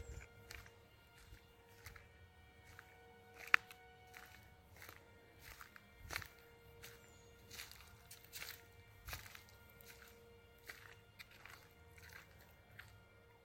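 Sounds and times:
footsteps of someone walking inside in the Drakensberg: 0.0 - 13.2.

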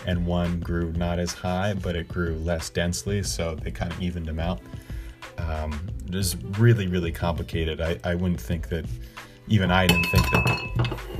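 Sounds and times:
speech: 0.0 - 11.1
ceramic tea mug knocked over: 9.9 - 11.1.

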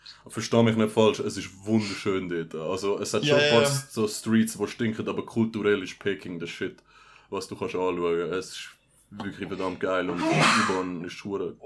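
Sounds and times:
speech: 0.2 - 11.6
sneeze: 10.1 - 10.9.

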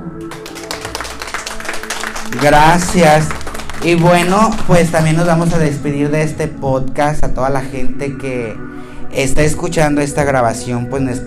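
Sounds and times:
small group applauding: 0.2 - 5.6
speech: 2.3 - 11.2.

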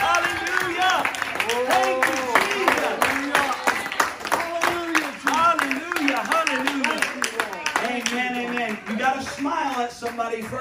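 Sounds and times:
audience clapping: 0.0 - 10.6.

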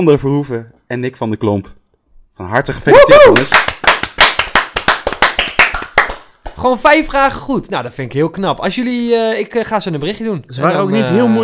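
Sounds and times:
speech: 0.0 - 1.8, 2.4 - 3.8, 6.6 - 11.4
small group clapping for quiz winners: 3.1 - 6.8.

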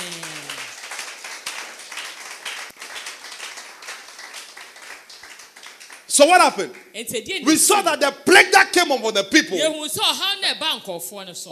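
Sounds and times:
audience clapping: 0.0 - 7.0
speech: 6.2 - 11.5.

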